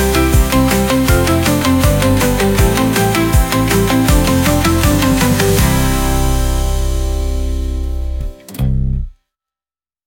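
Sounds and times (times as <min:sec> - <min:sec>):
handclaps: 0:00.0 - 0:05.7
80 bpm guitar pop instrumental: 0:00.0 - 0:08.9.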